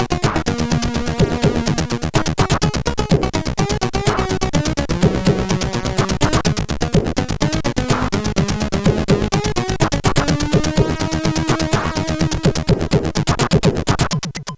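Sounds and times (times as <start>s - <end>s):
SID CSG8580R5 chip rhythm: 0.0s - 14.5s.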